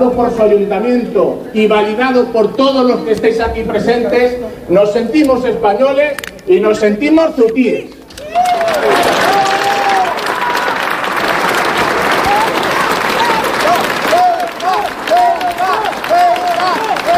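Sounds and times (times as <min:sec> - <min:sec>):
speech: 0:00.0 - 0:08.9
crowd shouting and applauding in support: 0:08.1 - 0:17.1.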